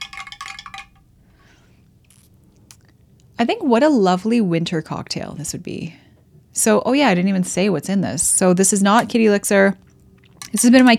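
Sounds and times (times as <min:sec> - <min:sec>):
spoon clinking against a glass while stirring a drink: 0:00.0 - 0:01.0
speech: 0:03.4 - 0:06.0, 0:06.6 - 0:09.9, 0:10.5 - 0:10.9.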